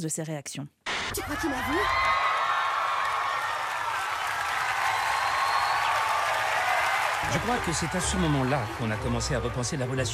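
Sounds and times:
speech: 0.0s - 2.2s, 7.3s - 10.1s
sitcom studio audience clapping and roaring: 0.9s - 10.1s.

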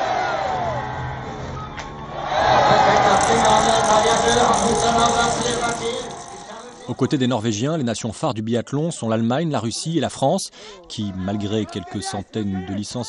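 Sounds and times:
crowd cheering hurrahs at biathlon shooting: 0.0s - 7.3s
crowd murmuring: 2.6s - 7.3s
speech: 6.9s - 13.0s.

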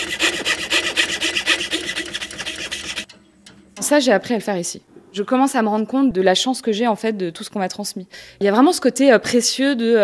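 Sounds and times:
small-bladed carving machine cutting ivory and mother-of-pearl: 0.0s - 3.1s
speech: 3.9s - 10.0s.

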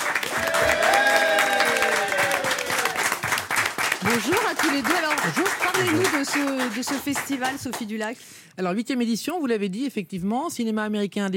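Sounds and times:
audience applause: 0.0s - 7.8s
faint voices or cheers: 0.3s - 3.2s
speech: 4.1s - 11.3s.

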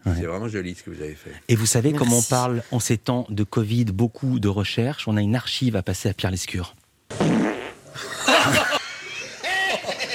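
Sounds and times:
speech: 0.2s - 6.8s
farting fly sound effect: 7.1s - 7.8s
laughter: 8.0s - 10.1s.

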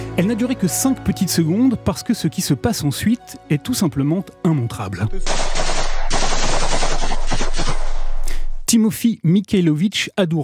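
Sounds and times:
speech: 0.2s - 5.8s, 8.7s - 10.4s
automatic weapon gunfire: 5.2s - 8.2s.

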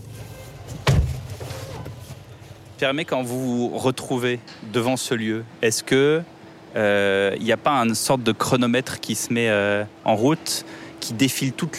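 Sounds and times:
car door shutting: 0.8s - 1.3s
speech: 2.8s - 11.7s.

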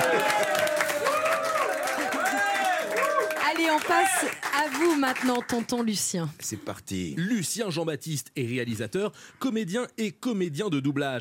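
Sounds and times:
audience applause: 0.0s - 5.8s
speech: 3.8s - 11.1s.

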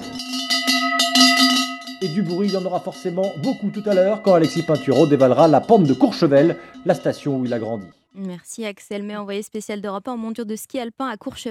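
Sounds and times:
large cowbell clanking: 0.0s - 8.0s
speech: 2.0s - 11.4s.

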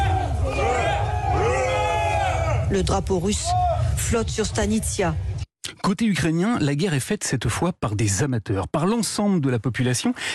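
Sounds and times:
soldiers shouting hoarse cries: 0.0s - 2.7s
speech: 2.7s - 5.3s, 5.9s - 10.3s.

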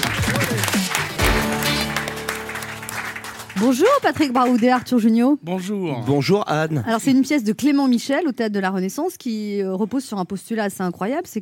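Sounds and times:
audience applause: 0.0s - 4.8s
speech: 3.6s - 11.3s.

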